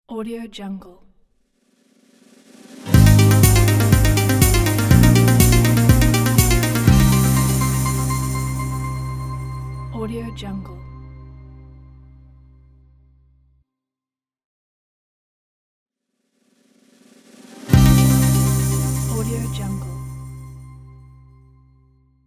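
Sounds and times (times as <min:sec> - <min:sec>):
news logo jingle: 0:02.9 - 0:11.7, 0:17.8 - 0:20.6.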